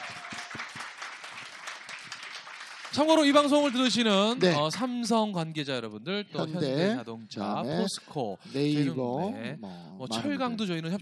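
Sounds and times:
audience applause: 0.0s - 4.4s
speech: 2.9s - 10.9s.

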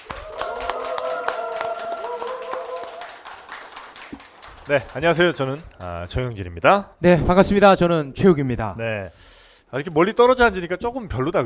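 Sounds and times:
audience applause: 0.0s - 5.6s
speech: 4.7s - 11.4s.

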